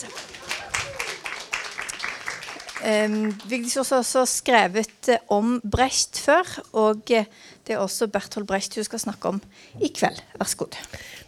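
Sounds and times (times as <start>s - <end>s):
audience applause: 0.0s - 3.6s
speech: 2.8s - 11.2s.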